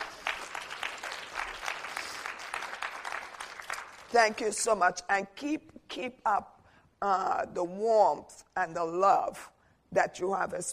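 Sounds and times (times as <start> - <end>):
audience applauding: 0.0 - 4.2
speech: 4.1 - 10.7.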